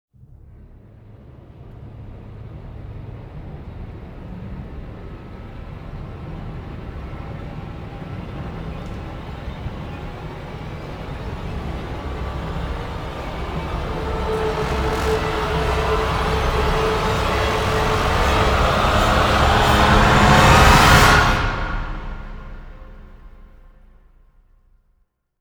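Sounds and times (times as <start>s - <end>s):
orchestra: 1.1s - 23.9s
choir: 3.1s - 23.0s.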